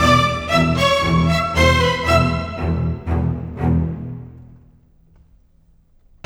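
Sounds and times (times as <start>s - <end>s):
cinematic orchestral strings: 0.0s - 5.0s.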